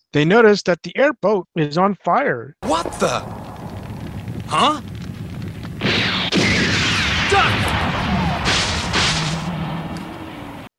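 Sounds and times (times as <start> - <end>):
speech: 0.1 - 3.4, 4.5 - 4.9
tank cannon blasts: 2.6 - 10.7.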